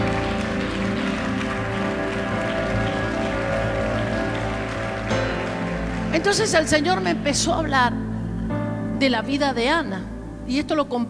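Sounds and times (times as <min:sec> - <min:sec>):
crowd applauding loudly: 0:00.0 - 0:07.8
speech: 0:06.2 - 0:08.0, 0:09.0 - 0:11.0.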